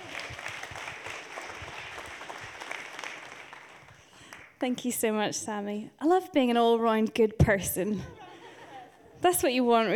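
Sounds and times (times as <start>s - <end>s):
audience clapping: 0.0s - 4.6s
speech: 4.6s - 8.2s, 9.2s - 9.9s
laughter: 8.0s - 9.2s.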